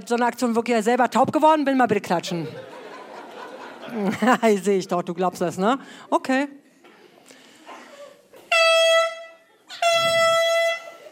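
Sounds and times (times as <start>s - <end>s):
speech: 0.0s - 2.8s, 3.9s - 6.6s
laughter: 2.3s - 4.5s
loud high-pitched air horn blasts: 8.4s - 11.1s.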